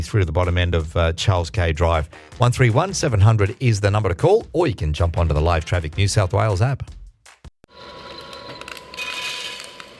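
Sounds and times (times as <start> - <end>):
speech: 0.0 - 7.0
coffee being roasted in roaster: 7.7 - 9.9.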